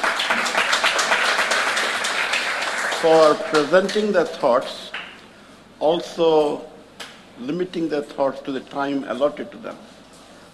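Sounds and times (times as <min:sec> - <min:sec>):
audience round of applause: 0:00.0 - 0:04.1
speech: 0:03.0 - 0:05.0, 0:05.8 - 0:06.7, 0:07.4 - 0:09.9.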